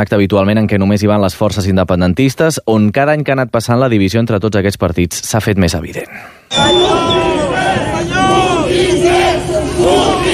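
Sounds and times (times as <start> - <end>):
speech: 0.0 - 7.8
attendees shouting: 6.5 - 10.3.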